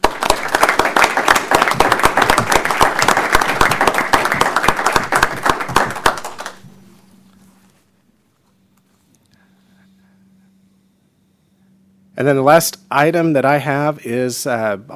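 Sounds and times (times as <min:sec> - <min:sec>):
audience applause at a meeting: 0:00.0 - 0:06.6
speech: 0:12.2 - 0:14.9.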